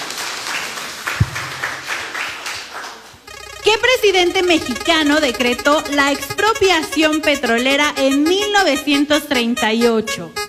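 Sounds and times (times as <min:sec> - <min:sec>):
audience applause: 0:00.0 - 0:03.2
speech: 0:03.6 - 0:10.4.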